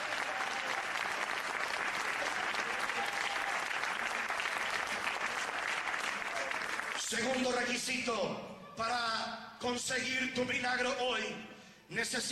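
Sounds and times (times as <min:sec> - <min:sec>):
loud applause from audience: 0:00.0 - 0:07.6
speech: 0:07.1 - 0:12.3.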